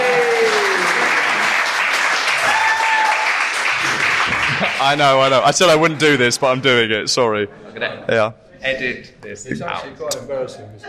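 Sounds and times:
audience applause: 0.0 - 6.4
speech: 4.8 - 10.8.

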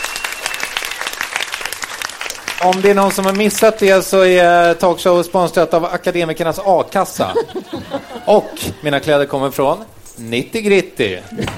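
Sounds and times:
audience clapping: 0.0 - 4.2
speech: 2.6 - 11.5
laughter: 7.1 - 9.1, 11.2 - 11.5.

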